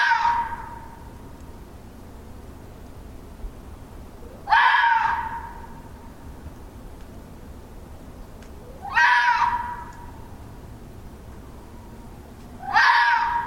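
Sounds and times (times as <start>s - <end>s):
red fox calling with hoarse scream-like calls: 0.0s - 1.1s, 4.4s - 5.8s, 8.7s - 10.2s, 12.6s - 13.4s.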